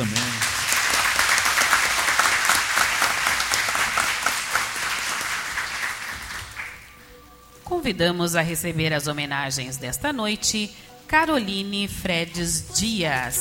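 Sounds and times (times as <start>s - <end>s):
audience applause: 0.0s - 7.0s
speech: 7.8s - 13.3s.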